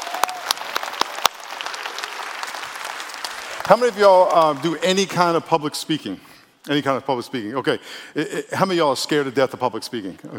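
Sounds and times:
church congregation clapping at a New Year service: 0.0s - 5.7s
speech: 3.7s - 10.3s.

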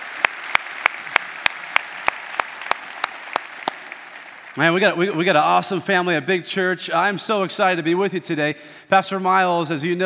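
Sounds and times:
church audience rhythmic applause: 0.0s - 5.7s
speech: 4.6s - 10.0s.

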